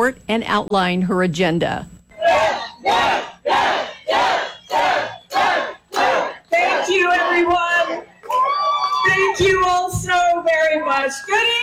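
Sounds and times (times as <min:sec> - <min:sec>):
speech: 0:00.0 - 0:03.8, 0:09.1 - 0:11.6
large crowd chanting a candidate's name: 0:02.2 - 0:08.0.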